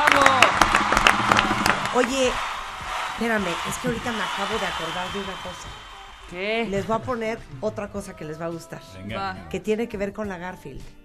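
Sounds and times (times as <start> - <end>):
applause: 0.0 - 7.3
speech: 2.0 - 2.5, 3.2 - 11.0.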